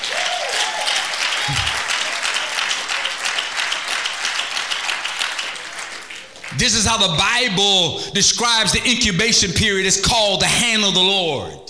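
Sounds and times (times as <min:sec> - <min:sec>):
audience clapping: 0:00.0 - 0:07.6
speech: 0:06.6 - 0:11.6.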